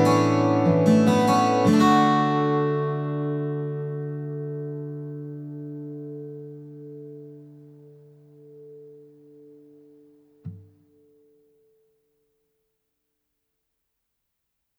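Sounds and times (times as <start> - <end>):
emotional acoustic music: 0.0 - 11.4.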